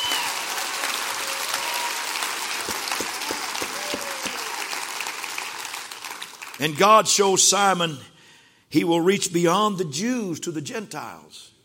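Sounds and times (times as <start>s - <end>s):
audience clapping hands: 0.0s - 7.0s
speech: 6.6s - 8.1s, 8.7s - 11.5s.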